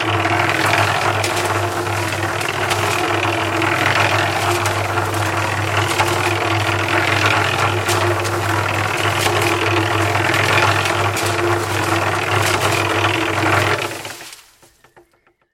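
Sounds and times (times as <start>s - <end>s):
concrete mixer noise: 0.0s - 15.5s.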